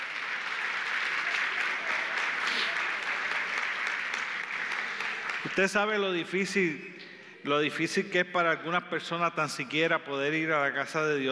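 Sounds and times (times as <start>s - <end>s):
audience applause: 0.0s - 5.6s
speech: 5.5s - 11.3s.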